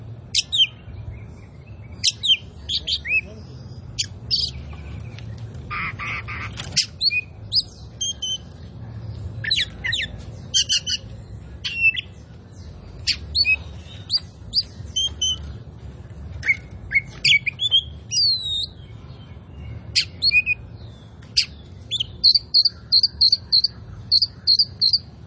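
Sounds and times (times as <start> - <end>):
low background hum: 0.0 - 25.2
Oriental magpie-robin singing: 0.2 - 25.2.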